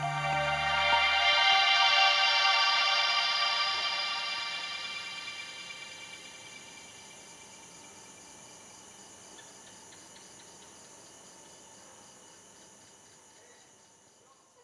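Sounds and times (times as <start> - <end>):
synth pads: 0.0 - 7.0.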